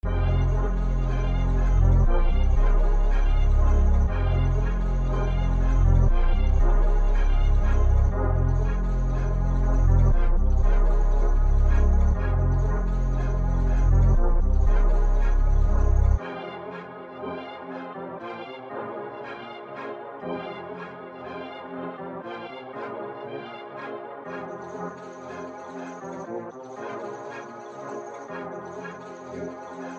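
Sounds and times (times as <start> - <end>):
dark music in F minor at 119 BPM: 0.0 - 29.9.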